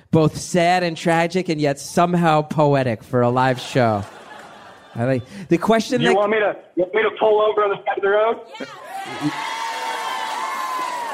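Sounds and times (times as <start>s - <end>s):
speech: 0.1s - 4.2s, 5.0s - 9.5s
laughter: 3.4s - 6.2s, 8.6s - 9.9s
live crowd cheering and whooping: 8.5s - 11.1s.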